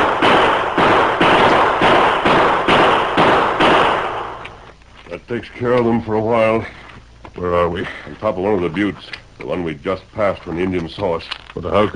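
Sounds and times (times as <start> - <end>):
rapid gunshots fired from the top of a rock butte: 0.0 - 4.4
speech: 5.3 - 6.8, 7.4 - 11.9.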